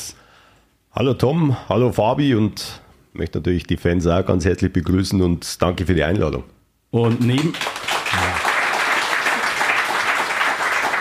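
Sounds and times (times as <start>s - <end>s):
speech: 1.0s - 8.3s
audience applause: 7.1s - 10.9s.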